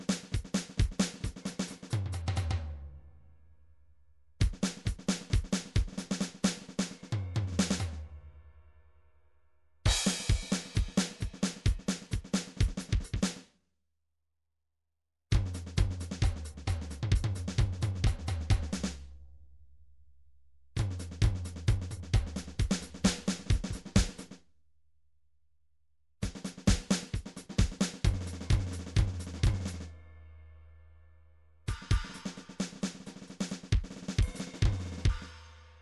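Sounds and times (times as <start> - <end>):
MIDI drums: 0.0 - 2.7, 4.4 - 8.0, 9.9 - 13.4, 15.3 - 19.2, 20.8 - 24.4, 26.2 - 29.9, 31.7 - 35.4.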